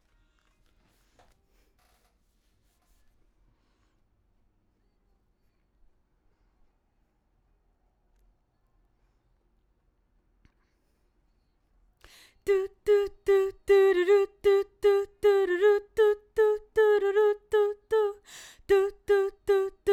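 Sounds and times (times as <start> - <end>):
background vocals: 12.1 - 19.9.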